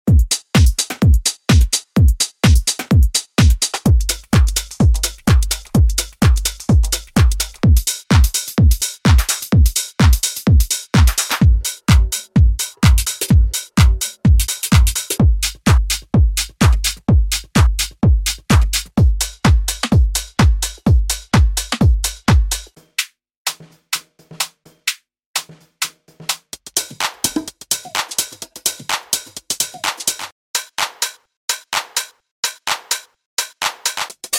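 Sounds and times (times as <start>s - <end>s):
minimal techno music: 0.1s - 22.8s.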